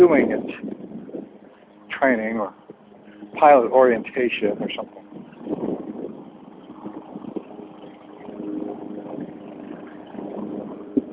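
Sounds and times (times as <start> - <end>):
speech: 0.0 - 0.7, 2.0 - 2.6, 3.4 - 5.6
lawnmower running: 0.7 - 11.1.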